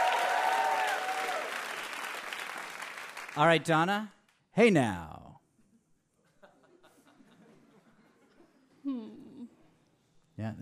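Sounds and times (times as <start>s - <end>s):
audience applause: 0.0s - 3.6s
speech: 3.4s - 5.1s, 10.4s - 10.6s
laughter: 6.2s - 8.8s.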